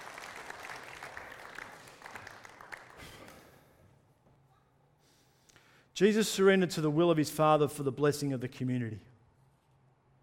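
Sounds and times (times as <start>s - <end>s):
audience applause: 0.0s - 3.6s
speech: 6.0s - 9.1s.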